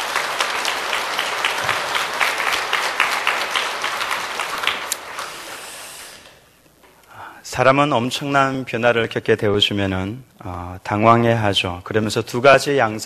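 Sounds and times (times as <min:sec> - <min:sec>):
audience applause: 0:00.0 - 0:05.8
speech: 0:07.6 - 0:13.0.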